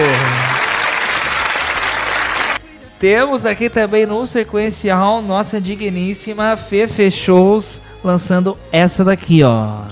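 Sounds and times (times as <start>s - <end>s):
crowd applause at a Brazilian funk show: 0.0s - 2.6s
speech: 3.0s - 9.9s.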